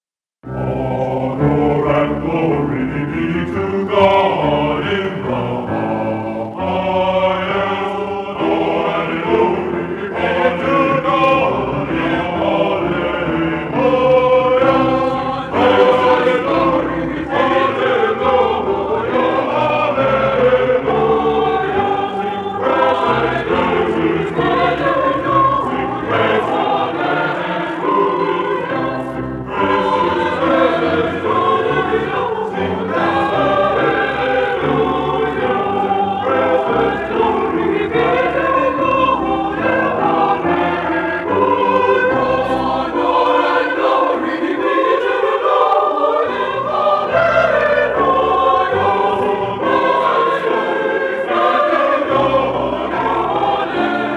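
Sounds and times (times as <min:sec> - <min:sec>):
choir singing a four-part fugue: 0:00.4 - 0:54.1.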